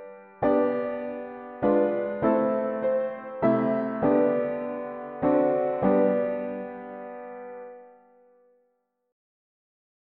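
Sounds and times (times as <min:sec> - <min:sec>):
mono piano playing hymns: 0:00.0 - 0:08.0.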